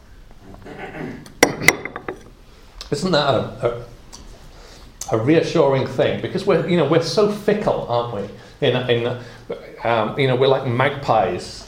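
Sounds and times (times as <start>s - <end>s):
glass of water clinking as lifted and set down: 1.4s - 2.3s
speech: 2.9s - 4.0s, 5.1s - 11.6s.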